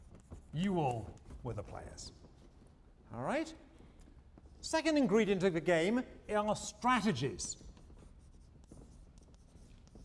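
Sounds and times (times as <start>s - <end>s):
writing during a game theory lecture: 0.0s - 2.8s, 6.9s - 10.0s
speech: 0.6s - 2.2s, 3.1s - 3.6s, 4.6s - 7.7s.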